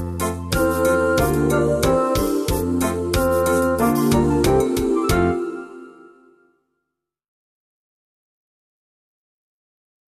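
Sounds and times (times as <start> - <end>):
children's song: 0.6 - 5.9.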